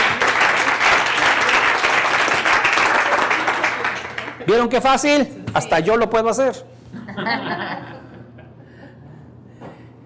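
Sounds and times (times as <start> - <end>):
audience clapping: 0.0 - 4.6
laughter: 2.8 - 4.7, 6.9 - 9.2
speech: 4.5 - 7.9.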